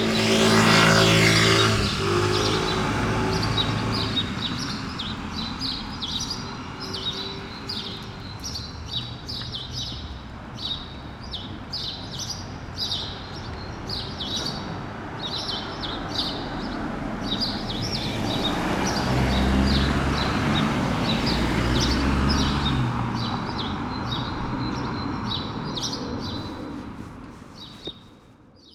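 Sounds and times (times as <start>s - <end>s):
car roaring by: 0.0s - 8.0s, 16.8s - 27.0s
sparrows chirping: 0.0s - 28.7s
street noise: 0.0s - 28.7s.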